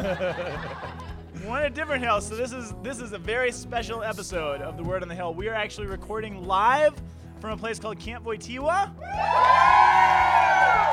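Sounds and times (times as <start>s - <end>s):
laughter: 0.0s - 1.5s
speech: 0.0s - 9.7s
crowd cheering: 9.0s - 10.9s.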